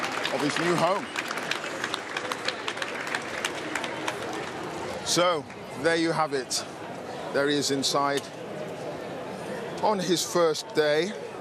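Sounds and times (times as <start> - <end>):
applause from staff inside a building: 0.0 - 5.7
speech: 0.3 - 1.2, 5.1 - 8.4, 9.8 - 11.2.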